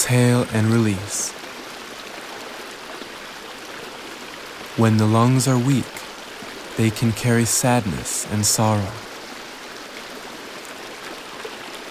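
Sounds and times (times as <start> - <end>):
rushing water: 0.0 - 11.8
speech: 0.1 - 1.4, 4.8 - 6.0, 6.8 - 9.1.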